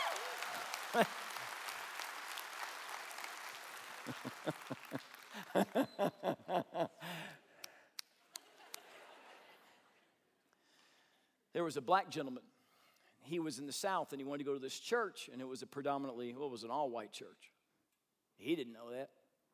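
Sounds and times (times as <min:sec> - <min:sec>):
audience applauding with rhythmic unison claps: 0:00.0 - 0:07.2
speech: 0:00.9 - 0:01.2, 0:05.6 - 0:07.2, 0:11.6 - 0:12.5, 0:13.2 - 0:17.6, 0:18.4 - 0:19.2
laughter: 0:00.9 - 0:01.3, 0:04.0 - 0:07.3, 0:08.4 - 0:09.9.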